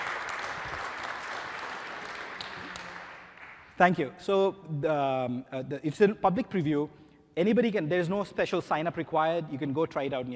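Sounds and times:
audience applause: 0:00.0 - 0:03.8
speech: 0:03.8 - 0:10.3.

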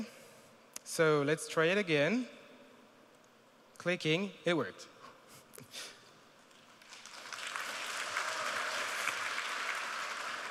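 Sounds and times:
speech: 0:01.0 - 0:02.4, 0:03.8 - 0:04.9
audience applause: 0:06.8 - 0:10.4.

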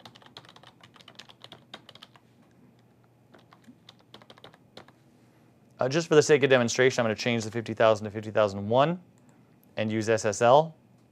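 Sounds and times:
typing a custom string on a computer keyboard: 0:00.0 - 0:02.2, 0:02.8 - 0:05.0
speech: 0:05.8 - 0:09.1, 0:09.8 - 0:10.8.

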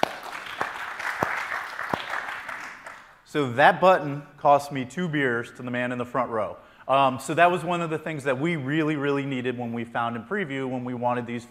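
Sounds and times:
audience applause: 0:00.0 - 0:03.1
speech: 0:03.3 - 0:11.4.

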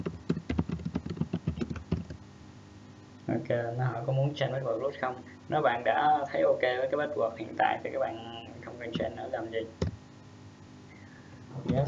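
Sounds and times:
keyboard typing a root password during MySQL setup: 0:00.0 - 0:02.2
speech: 0:03.3 - 0:09.9.

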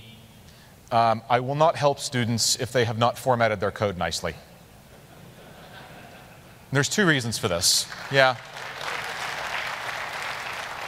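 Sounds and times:
speech: 0:00.9 - 0:04.5, 0:06.7 - 0:08.7
audience clapping in a classroom lecture: 0:07.8 - 0:10.8.

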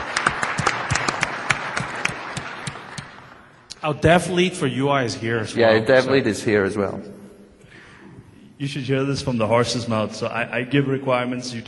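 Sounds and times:
audience applause: 0:00.0 - 0:03.4
speech: 0:03.8 - 0:07.2, 0:08.6 - 0:11.6.

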